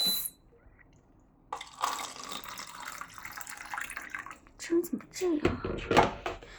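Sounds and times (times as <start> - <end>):
water pouring into a glass: 1.5 - 4.6
speech: 5.2 - 6.2.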